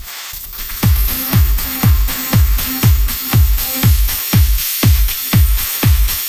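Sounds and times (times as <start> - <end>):
pop anthem: 0.8 - 6.1.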